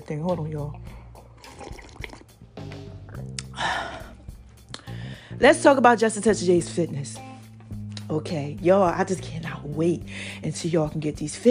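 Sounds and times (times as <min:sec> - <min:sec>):
speech: 0:00.1 - 0:01.0, 0:05.4 - 0:07.3, 0:08.1 - 0:11.4
tea pouring into a cup: 0:01.2 - 0:02.4.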